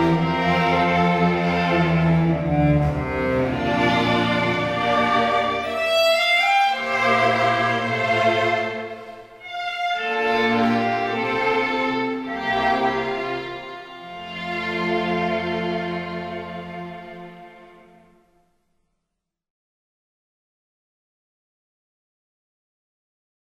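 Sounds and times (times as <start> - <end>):
string ensemble: 0.0 - 18.4.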